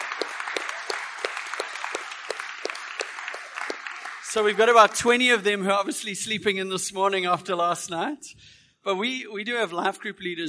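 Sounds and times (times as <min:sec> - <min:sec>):
audience applause: 0:00.0 - 0:05.5
speech: 0:04.4 - 0:10.4.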